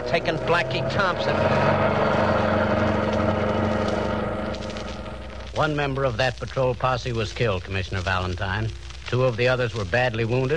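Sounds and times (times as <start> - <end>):
getaway car engine running: 0.0 - 6.2
speech: 0.1 - 2.4, 5.6 - 10.5.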